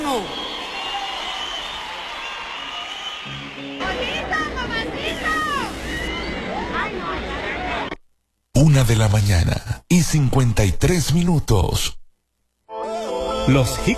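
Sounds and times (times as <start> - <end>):
shrill whistles: 0.0 - 3.9
audience applause: 0.0 - 4.4
crowd cheering: 0.0 - 8.0
crowd murmur: 3.4 - 8.0
speech: 8.6 - 12.0, 13.5 - 13.9.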